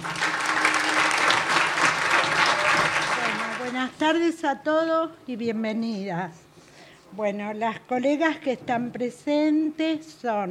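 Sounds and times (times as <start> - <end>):
audience applause: 0.0 - 3.9
speech: 4.0 - 6.4, 7.1 - 10.4.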